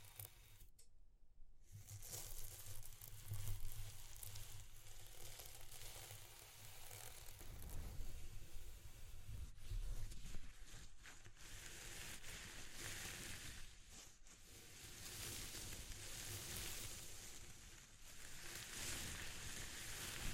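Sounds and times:
ASMR texture rustling and scratching with a hissy edge: 0:00.0 - 0:00.6, 0:01.8 - 0:20.3.

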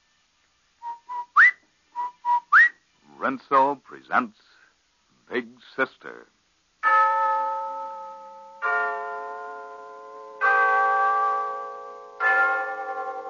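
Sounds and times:
speech: 0:03.2 - 0:04.5, 0:05.3 - 0:06.4
Glen Falls Town Hall clock bell chiming: 0:06.8 - 0:13.2.

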